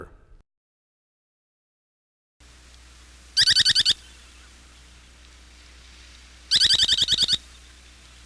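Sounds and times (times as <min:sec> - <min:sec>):
Semipalmated Sandpiper giving harsh pulsed trills: 0:03.3 - 0:05.6, 0:06.4 - 0:08.2.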